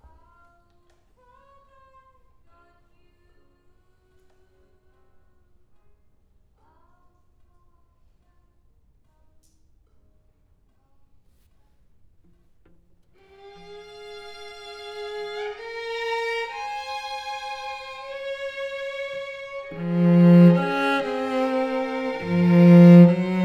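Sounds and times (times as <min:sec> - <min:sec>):
cello: 0:13.3 - 0:23.4.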